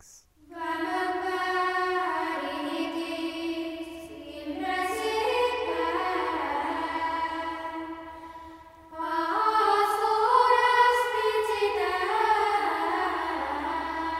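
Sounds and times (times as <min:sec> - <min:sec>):
liturgical drama trope chant: 0:00.4 - 0:14.1.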